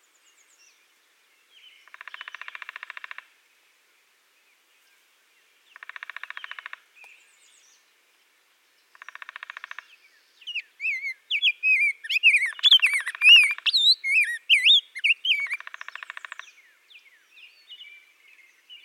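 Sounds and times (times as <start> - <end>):
rose-breasted grosbeak singing Pheucticus ludovicianus: 10.4 - 18.8.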